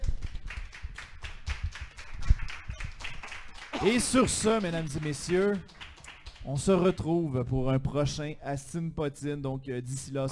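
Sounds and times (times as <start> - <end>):
applause: 0.0 - 7.6
speech: 3.8 - 5.8, 6.4 - 10.3.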